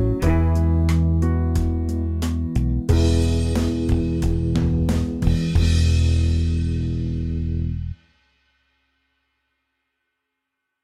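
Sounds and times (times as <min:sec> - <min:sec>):
Christmas acoustic lead melody: 0:00.0 - 0:08.0.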